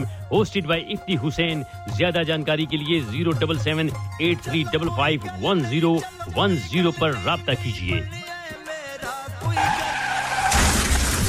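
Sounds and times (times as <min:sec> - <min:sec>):
speech: 0:00.0 - 0:08.2
taxi tires squealing and skidding in a car crash sound effect: 0:09.6 - 0:11.2
car crash shattering glass and crunching impact: 0:10.2 - 0:11.2.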